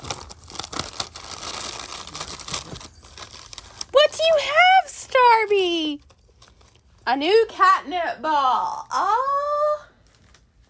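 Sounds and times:
gift wrapping paper being unwrapped: 0.0s - 7.1s, 10.0s - 10.6s
speech: 7.1s - 9.4s.

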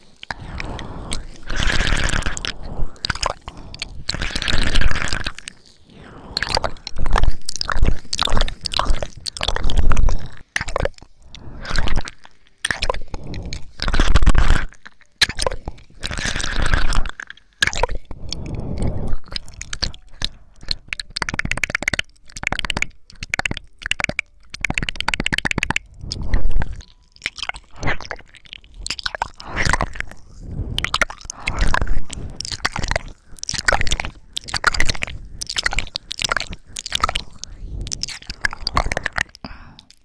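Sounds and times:
ear licking and wet mouth sounds: 0.0s - 40.0s.

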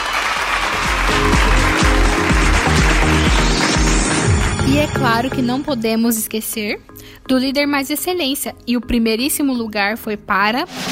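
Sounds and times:
audience applause: 0.0s - 4.6s
speech: 4.8s - 10.9s.

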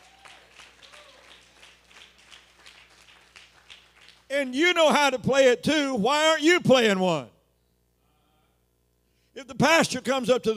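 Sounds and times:
audience clapping: 0.0s - 4.3s
speech: 4.3s - 7.3s, 9.6s - 10.5s.

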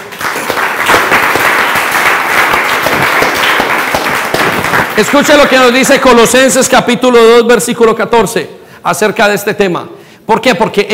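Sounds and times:
church audience applause: 0.0s - 5.8s
speech: 5.0s - 10.9s.

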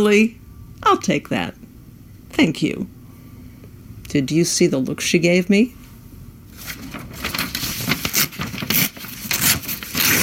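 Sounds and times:
speech: 0.0s - 1.6s, 2.3s - 3.0s, 4.1s - 5.8s
magazine paper tearing: 6.6s - 10.2s.

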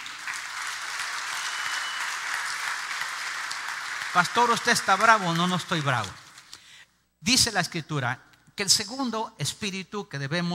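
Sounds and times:
audience applause: 0.0s - 6.5s
speech: 4.1s - 6.2s, 7.2s - 10.5s.

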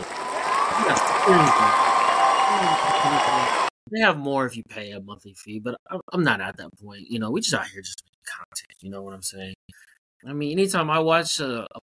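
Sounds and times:
crowd cheering and clapping sound effect from a podcast tool: 0.0s - 3.7s
speech: 1.3s - 1.8s, 2.6s - 11.8s.

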